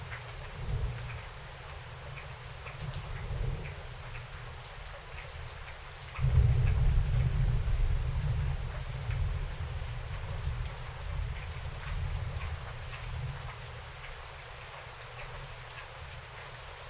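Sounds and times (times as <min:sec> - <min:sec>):
rain outside: 0:00.0 - 0:16.8
thunder outside: 0:06.2 - 0:11.9.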